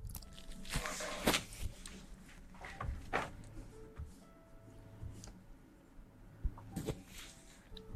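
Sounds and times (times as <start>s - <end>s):
ear cleaning and massage with soft rubbing and scratching: 0.5s - 3.1s, 6.8s - 7.7s.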